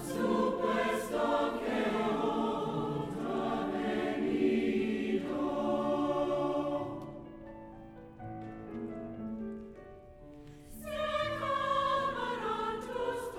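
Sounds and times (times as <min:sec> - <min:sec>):
university choir singing a tonada: 0:00.0 - 0:07.6, 0:10.7 - 0:13.3.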